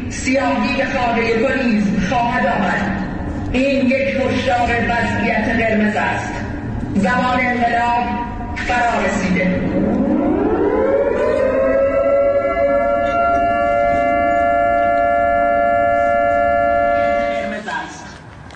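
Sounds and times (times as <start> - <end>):
speech: 0.2 - 9.9
civil defense siren wailing: 8.6 - 17.7.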